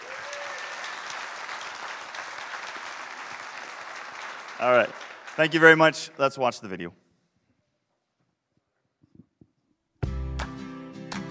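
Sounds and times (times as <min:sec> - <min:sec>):
church congregation applause welcoming remote guests: 0:00.0 - 0:06.0
speech: 0:04.6 - 0:07.0.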